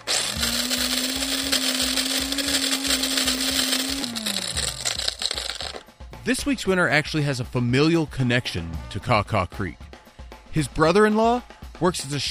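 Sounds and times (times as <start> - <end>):
hand-cranked prize drawing grinder churning: 0.0 - 5.8
speech: 6.3 - 9.8, 10.6 - 12.2.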